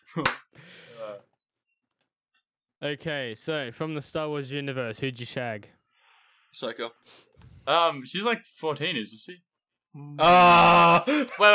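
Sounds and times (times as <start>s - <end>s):
speech: 0.2s - 0.4s, 2.8s - 5.8s, 6.5s - 11.5s
hand clapping: 0.2s - 0.6s.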